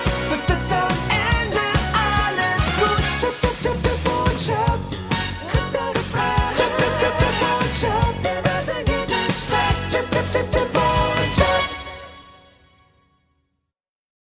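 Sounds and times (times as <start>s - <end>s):
person singing in US English: 0.0s - 12.0s.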